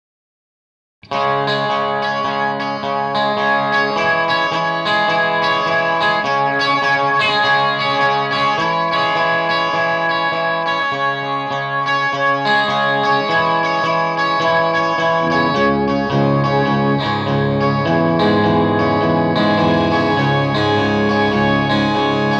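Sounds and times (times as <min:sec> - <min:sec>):
twelve-string guitar: 0:01.0 - 0:22.3.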